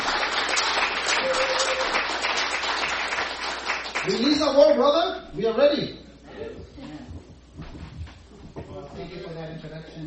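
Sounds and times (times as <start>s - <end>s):
audience clapping: 0.0s - 4.5s
speech: 4.0s - 6.7s, 8.8s - 10.0s.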